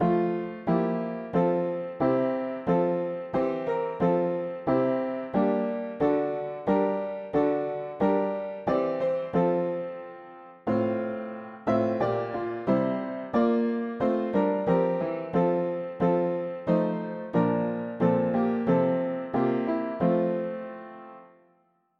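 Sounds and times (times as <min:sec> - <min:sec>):
mono piano: 0:00.0 - 0:21.9.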